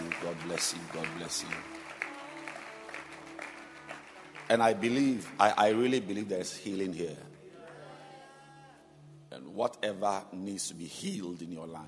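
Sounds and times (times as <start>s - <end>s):
audience clapping hands: 0.0s - 6.3s
speech: 0.4s - 1.8s, 4.5s - 7.3s, 9.3s - 11.8s.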